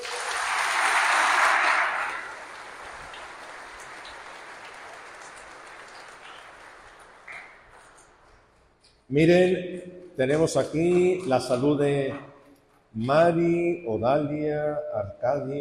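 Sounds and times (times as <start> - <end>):
audience applause: 0.0 - 8.3
speech: 9.1 - 12.3, 12.9 - 15.5.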